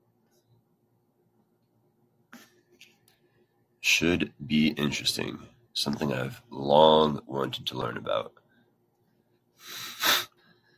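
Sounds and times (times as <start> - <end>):
speech: 3.9 - 8.4
person clearing mucus from the nose with a snort: 9.6 - 10.4.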